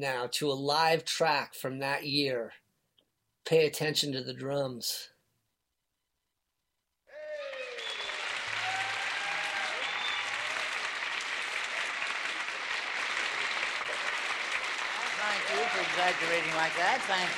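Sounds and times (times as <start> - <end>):
speech: 0.0 - 2.6, 3.4 - 5.1, 15.7 - 17.3
live concert audience applause: 7.1 - 17.3.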